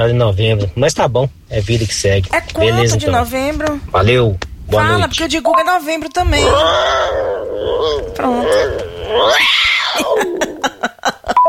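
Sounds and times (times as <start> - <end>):
speech: 0.0 - 11.4
cat yowling while stretching: 6.4 - 10.4
laughter: 10.0 - 11.4.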